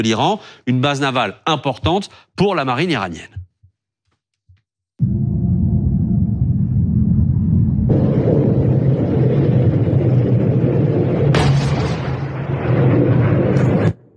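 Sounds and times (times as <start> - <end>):
speech: 0.0 - 3.4
explosions from American strikes in news footage: 5.0 - 14.1.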